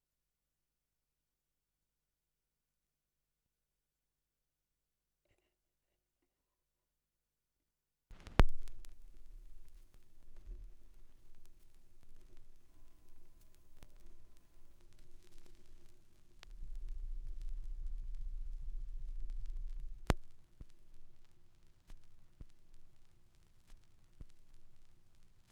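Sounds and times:
vinyl record noise: 0:08.1 - 0:25.5.

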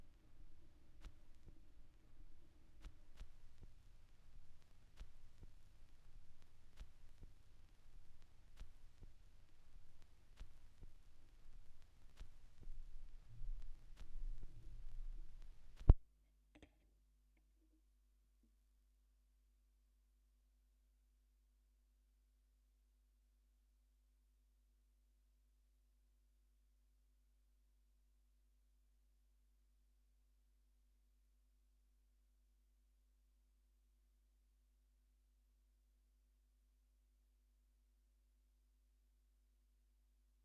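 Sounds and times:
vinyl record crackle: 0:00.0 - 0:16.0.

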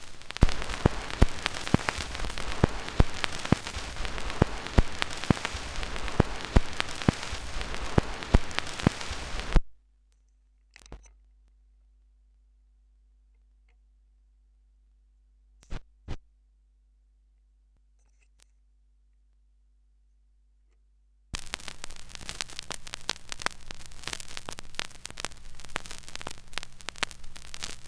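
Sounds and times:
vinyl record noise: 0:00.0 - 0:09.6, 0:21.4 - 0:27.8.

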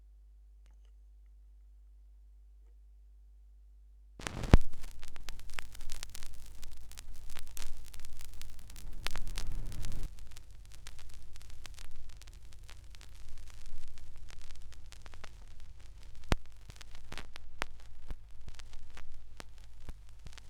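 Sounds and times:
vinyl record noise: 0:04.2 - 0:20.4.

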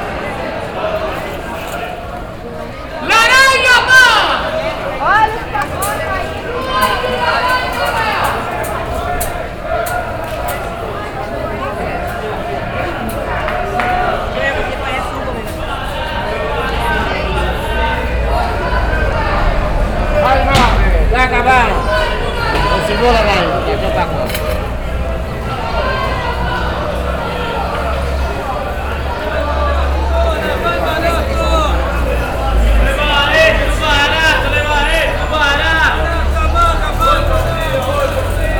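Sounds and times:
market ambience in Brazil: 0:00.0 - 0:38.5.

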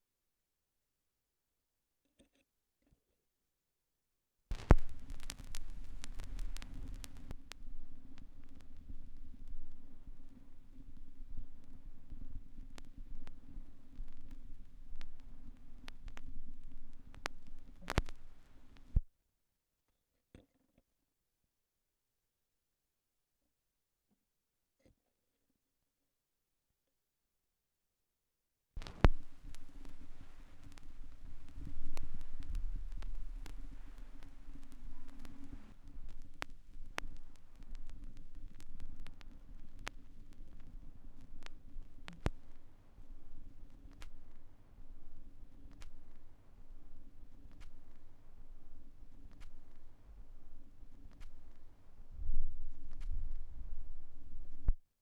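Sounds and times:
vinyl record noise: 0:04.5 - 0:19.1, 0:28.8 - 0:54.8.

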